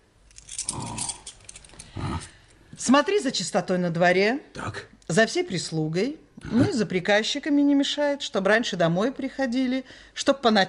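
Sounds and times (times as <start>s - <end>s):
keys jangling as they are handed over: 0.2s - 2.0s
speech: 2.8s - 10.6s.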